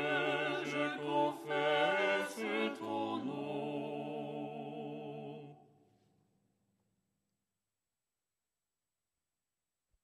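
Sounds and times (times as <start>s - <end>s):
ensemble chanting lucernaire stichera: 0.0s - 5.8s.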